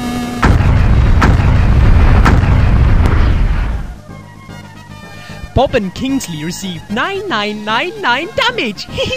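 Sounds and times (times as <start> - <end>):
Flame Ball level 4 fire spell explosion: 0.4 - 4.0
speech: 5.6 - 9.1.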